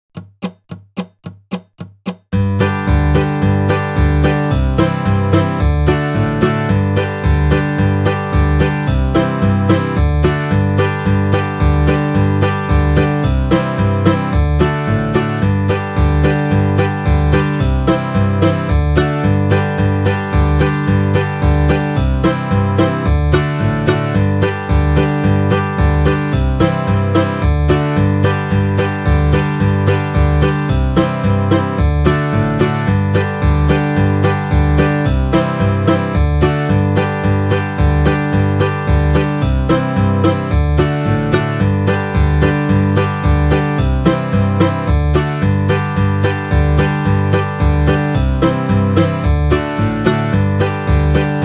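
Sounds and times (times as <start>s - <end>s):
old time fiddle tune: 2.4s - 51.4s.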